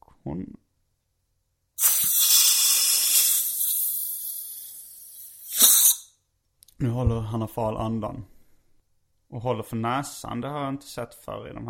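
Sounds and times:
speech: 0.2 - 0.6, 6.8 - 8.4, 9.3 - 11.6
inhaler spray hissing: 1.8 - 6.1.

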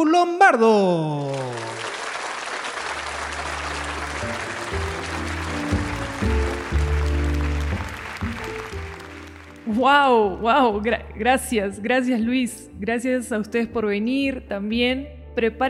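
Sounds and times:
speech: 0.0 - 1.8, 9.7 - 15.6
audience applause: 1.2 - 9.7.

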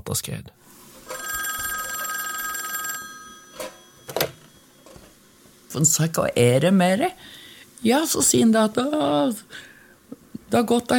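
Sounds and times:
speech: 0.1 - 0.8, 5.7 - 9.7, 10.5 - 10.9
telephone ringing: 1.0 - 5.5.

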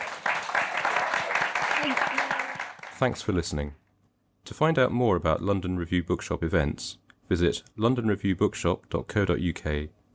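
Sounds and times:
audience round of applause: 0.0 - 3.2
speech: 1.8 - 2.2, 3.0 - 3.8, 4.4 - 10.0.

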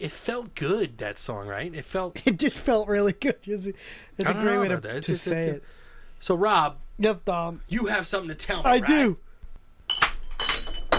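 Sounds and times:
speech: 0.0 - 9.2
glass objects clattering as knocked over: 9.9 - 10.9.

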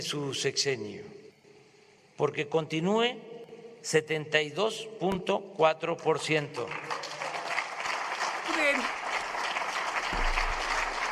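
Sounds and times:
speech: 0.0 - 1.2, 2.2 - 7.0, 8.5 - 9.0
applause: 6.6 - 11.1.

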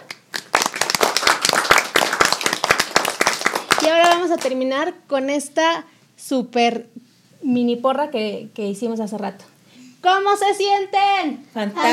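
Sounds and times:
audience applause: 0.0 - 4.2
speech: 3.8 - 11.9.

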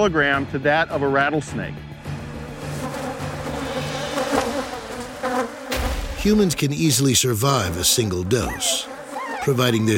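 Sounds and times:
speech: 0.0 - 1.9, 6.2 - 9.9
swarm of honeybees buzzing: 2.1 - 9.9.

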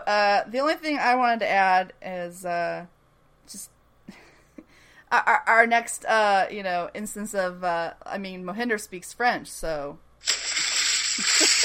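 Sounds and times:
speech: 0.1 - 4.2, 5.1 - 10.4
water splashing sound effect: 10.2 - 11.6.

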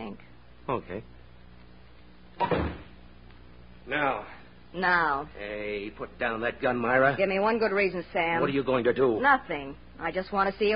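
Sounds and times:
speech: 0.1 - 1.2, 2.4 - 2.8, 3.9 - 10.7
door being closed: 2.4 - 3.0.

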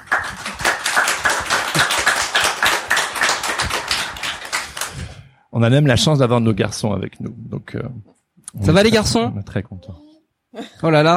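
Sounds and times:
applause: 0.0 - 5.2
speech: 5.6 - 11.1.

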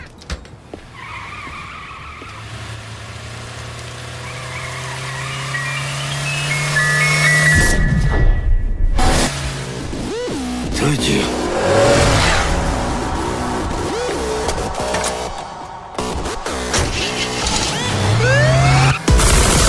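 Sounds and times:
animated film trailer excerpt: 6.5 - 19.6.

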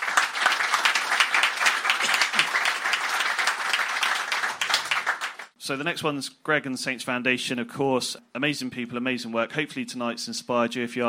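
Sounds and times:
audience applause: 0.0 - 5.5
speech: 5.6 - 11.0.

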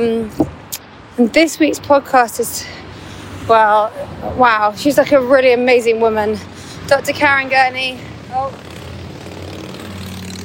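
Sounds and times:
speech: 1.2 - 2.9, 3.5 - 8.6
motorbike passing by: 3.5 - 10.4.

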